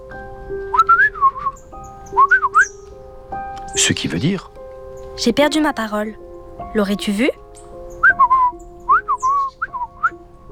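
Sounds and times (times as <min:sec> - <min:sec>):
person whistling imitating birdsong: 0:00.7 - 0:01.6, 0:02.2 - 0:02.8, 0:08.0 - 0:10.2
speech: 0:03.8 - 0:04.6, 0:05.2 - 0:07.4.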